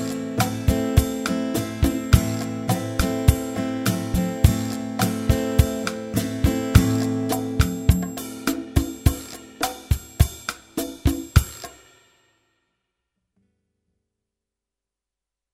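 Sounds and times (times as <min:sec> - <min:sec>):
guitar strumming A minor chord: 0:00.0 - 0:09.1.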